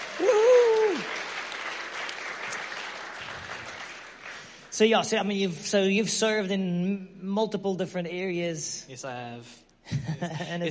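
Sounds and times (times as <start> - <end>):
applause welcoming the children at a kids' church service: 0.0 - 4.8
speech: 4.8 - 10.6.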